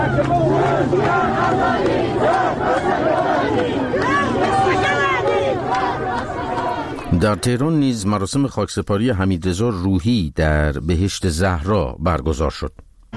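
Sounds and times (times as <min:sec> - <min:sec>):
crowd chanting protest slogans at funeral: 0:00.0 - 0:07.4
speech: 0:00.1 - 0:03.8, 0:07.2 - 0:12.8.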